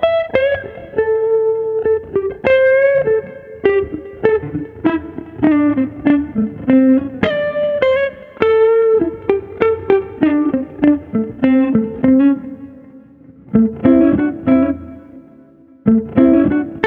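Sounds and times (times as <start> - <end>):
smooth jazz guitar at 100 bpm: 0.0 - 16.8.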